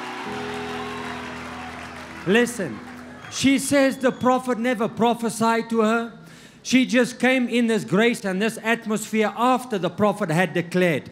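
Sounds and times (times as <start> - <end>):
audience clapping hands: 0.0 - 4.6
speech: 0.2 - 0.5, 2.2 - 11.1.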